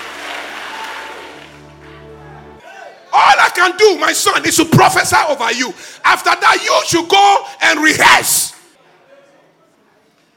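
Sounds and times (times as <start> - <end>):
congregation clapping during a church service: 0.0 - 2.1
speech: 3.6 - 8.6.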